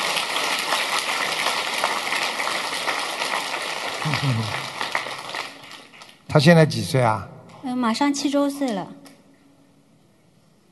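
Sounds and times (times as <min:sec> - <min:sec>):
crowd applause: 0:00.0 - 0:06.2
speech: 0:04.0 - 0:04.7, 0:06.3 - 0:09.0.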